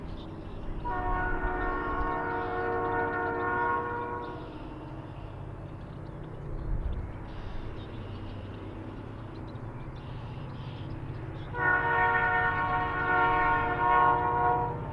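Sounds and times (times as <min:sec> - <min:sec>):
horn: 0:00.8 - 0:04.6, 0:11.5 - 0:14.8.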